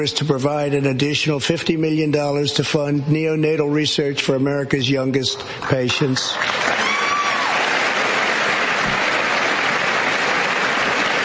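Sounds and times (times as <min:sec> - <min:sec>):
speech: 0:00.0 - 0:06.8
Congress applauding: 0:05.6 - 0:11.2.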